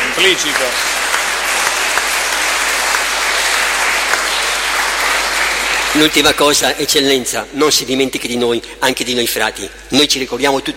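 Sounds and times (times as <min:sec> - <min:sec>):
audience applause: 0:00.0 - 0:07.3
speech: 0:00.2 - 0:01.1, 0:06.0 - 0:10.7.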